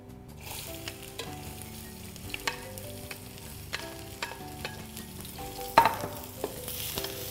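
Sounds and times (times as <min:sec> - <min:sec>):
onions and chili peppers stir-frying in hot oil: 0:00.4 - 0:07.2.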